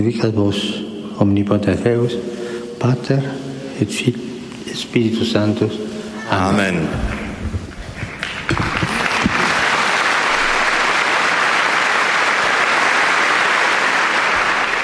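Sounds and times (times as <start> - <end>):
speech: 0.0 - 7.2
large audience applause in the Paul VI Hall: 8.0 - 14.8.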